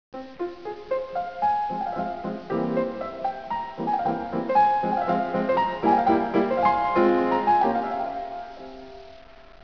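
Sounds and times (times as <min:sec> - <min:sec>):
piano sonata: 0:00.2 - 0:09.6.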